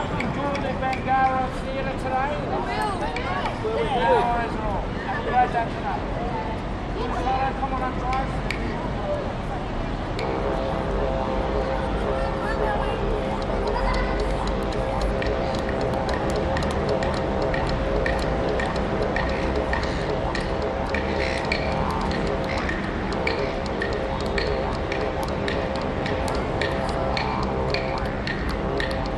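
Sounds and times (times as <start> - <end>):
street performers playing percussion: 0.0 - 4.6, 6.6 - 29.1
tourists in city public places: 0.0 - 29.1
street performers playing didgeridoo: 8.3 - 29.1.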